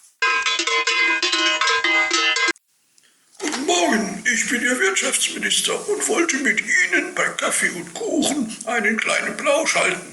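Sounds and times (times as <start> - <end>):
doorbell ringing with a metallic rattling pulse: 0.2 - 2.6
speech: 4.3 - 10.1.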